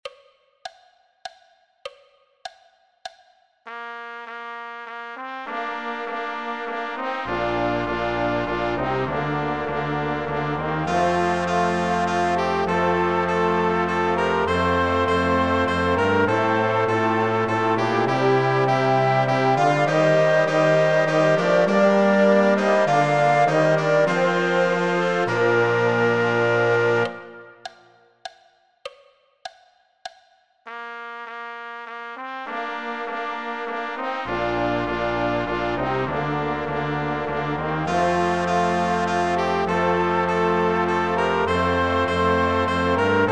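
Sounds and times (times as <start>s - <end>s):
orchestra playing an intrada: 5.5s - 27.6s, 33.8s - 43.3s.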